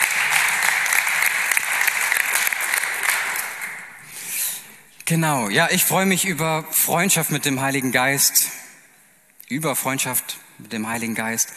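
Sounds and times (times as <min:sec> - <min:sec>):
audience applause: 0:00.0 - 0:04.1
speech: 0:05.1 - 0:08.6, 0:09.5 - 0:11.5.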